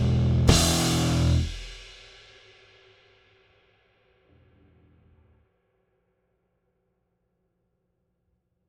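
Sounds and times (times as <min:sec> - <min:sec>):
compressed bass: 0:00.0 - 0:01.7, 0:04.3 - 0:05.4
drums: 0:00.0 - 0:04.3.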